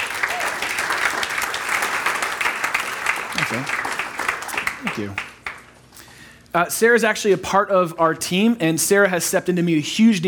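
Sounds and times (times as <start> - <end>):
church crowd applauding to welcome a woman to the stage: 0.0 - 5.7
speech: 3.6 - 3.9, 4.9 - 5.3, 6.6 - 10.2.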